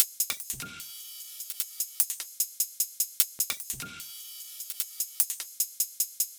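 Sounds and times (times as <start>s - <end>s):
150 BPM music loop: 0.0s - 2.2s, 3.5s - 5.4s.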